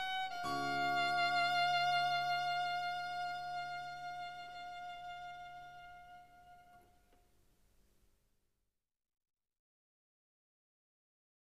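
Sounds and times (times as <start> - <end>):
violin in a sonata movement: 0.0 - 7.2.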